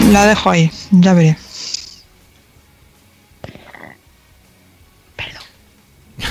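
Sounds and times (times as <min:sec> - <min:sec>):
speech: 0:00.1 - 0:01.4
suppressed inner burp: 0:03.4 - 0:04.4.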